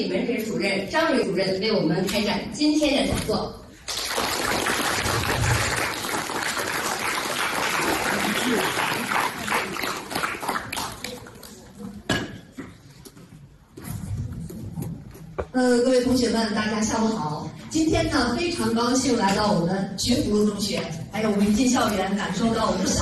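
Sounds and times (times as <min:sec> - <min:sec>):
speech: 0:00.0 - 0:03.6, 0:15.6 - 0:22.9
warm applause from audience: 0:03.9 - 0:11.6.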